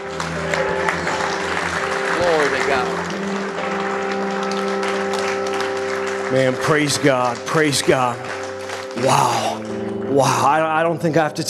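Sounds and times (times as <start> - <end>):
audience clapping hands in praise: 0.0 - 10.9
speech: 6.3 - 8.4, 9.0 - 11.4.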